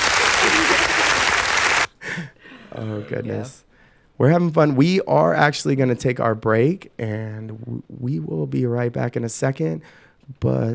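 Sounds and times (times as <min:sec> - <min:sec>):
canned crowd-laughing sound cue: 0:00.2 - 0:01.4
speech: 0:02.7 - 0:10.7.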